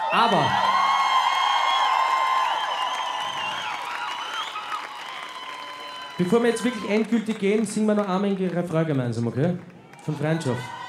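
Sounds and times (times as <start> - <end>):
cheering and sustained high-pitched whoops: 0.0 - 7.2, 9.9 - 10.8
concert audience applause: 0.0 - 10.8
speech: 0.1 - 0.7, 6.2 - 10.8.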